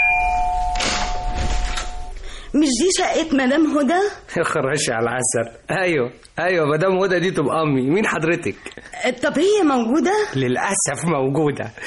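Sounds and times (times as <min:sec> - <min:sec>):
apartment doorbell ringing in a drama scene: 0:00.0 - 0:02.2
speech: 0:02.6 - 0:11.8.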